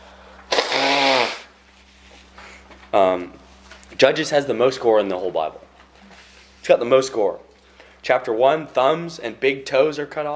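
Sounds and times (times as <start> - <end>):
low steady hum: 0.0 - 10.3
person blowing nose: 0.5 - 1.6
speech: 2.9 - 3.4, 4.0 - 5.7, 6.7 - 10.3.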